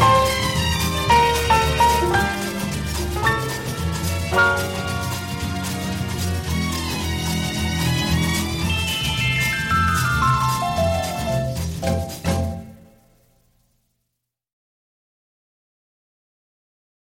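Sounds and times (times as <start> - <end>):
strings: 0.0 - 13.0
piano: 0.0 - 13.3
bossa nova music: 0.0 - 13.4.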